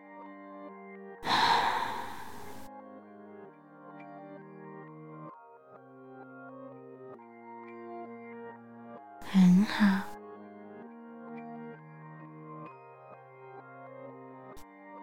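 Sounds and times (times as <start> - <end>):
soft slow exhale: 1.2 - 2.6
speech: 9.3 - 10.1.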